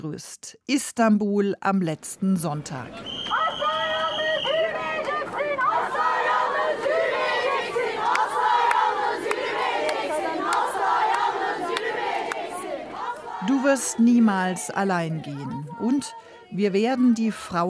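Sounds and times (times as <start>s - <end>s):
speech: 0.0s - 3.4s, 13.6s - 17.6s
crowd noise at a protest in Beşiktaş, Istanbul: 2.5s - 17.6s
several hundred women chanting at a protest against femicides in Beşiktaş, Istanbul: 5.0s - 17.6s.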